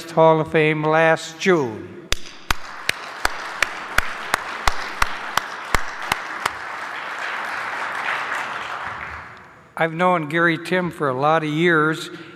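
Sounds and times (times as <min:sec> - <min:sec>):
speech: 0:00.2 - 0:02.0, 0:09.8 - 0:12.3
audience applause: 0:02.2 - 0:09.5.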